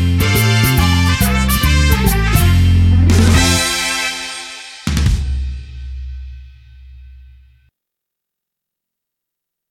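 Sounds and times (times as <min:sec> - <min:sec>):
instrumental music: 0:00.0 - 0:07.7.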